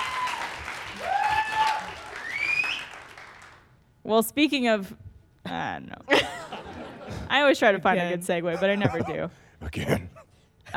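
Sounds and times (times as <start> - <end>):
people clapping in applause: 0.0 - 3.8
speech: 4.1 - 6.4, 7.1 - 10.1
laughter: 6.1 - 7.3, 8.4 - 9.3.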